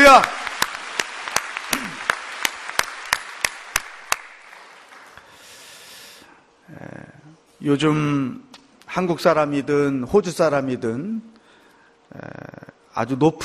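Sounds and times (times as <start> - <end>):
audience applause: 0.0 - 5.3
speech: 0.2 - 0.4, 7.6 - 11.3, 12.1 - 13.4.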